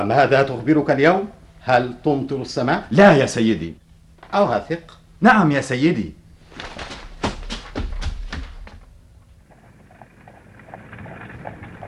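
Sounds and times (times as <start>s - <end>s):
speech: 0.0s - 6.8s
hooves of a horse pulling a milk delivery wagon in a town: 6.5s - 11.8s
milk delivery wagon low rumbling rattle: 9.4s - 11.8s.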